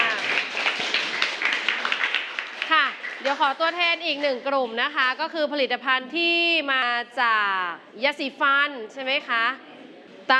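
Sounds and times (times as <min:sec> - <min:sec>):
audience applause: 0:00.0 - 0:03.4
speech: 0:03.2 - 0:09.7.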